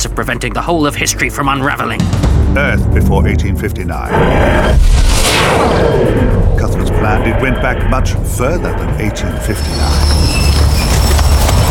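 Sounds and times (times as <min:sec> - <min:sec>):
speech: 0:00.1 - 0:10.4
thin high squealing tones of a train: 0:04.1 - 0:11.6
train running on rails: 0:06.2 - 0:11.6.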